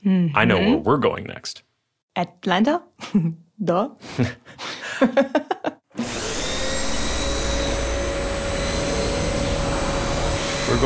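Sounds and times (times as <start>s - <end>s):
speech: 0.0s - 6.2s
laughter: 4.1s - 5.8s
vacuum cleaner running: 6.0s - 10.8s.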